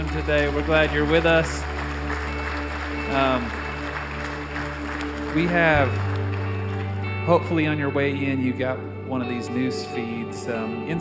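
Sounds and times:
audience applauding to welcome first-time visitors: 0.0 - 7.7
speech: 0.2 - 1.8, 3.1 - 3.6, 5.3 - 6.1, 7.2 - 11.0.

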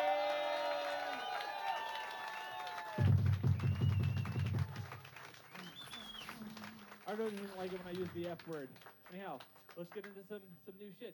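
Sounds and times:
audience applause: 0.0 - 10.1
speech: 7.1 - 11.1.

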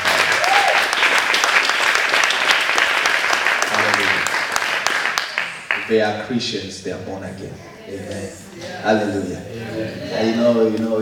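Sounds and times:
audience applause: 0.0 - 6.0
speech: 5.9 - 11.0.

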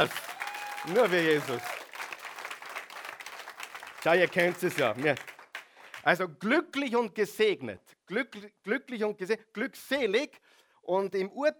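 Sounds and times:
speech: 0.0 - 0.2, 0.8 - 1.7, 4.0 - 5.3, 6.0 - 11.5
audience applause: 0.0 - 6.1.

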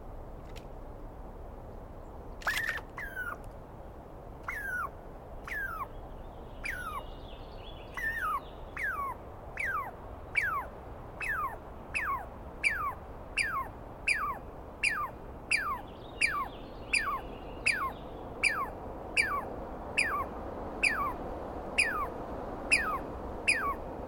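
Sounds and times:
soft background hiss: 0.0 - 24.0
Douglas squirrel harsh squealing calls: 2.4 - 3.4, 4.5 - 6.0, 6.6 - 7.1, 8.0 - 21.2, 21.8 - 23.8.

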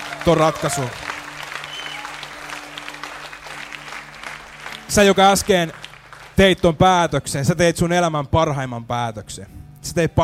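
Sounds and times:
audience applause: 0.0 - 6.7
speech: 0.2 - 1.1, 4.9 - 5.8, 6.4 - 10.2.

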